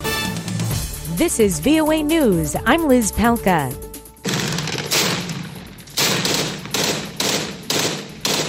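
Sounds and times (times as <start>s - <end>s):
speech: 1.2s - 3.8s
heavy booming gunfire as Syrian Democratic Forces close in on Islamic State territory: 4.2s - 8.4s.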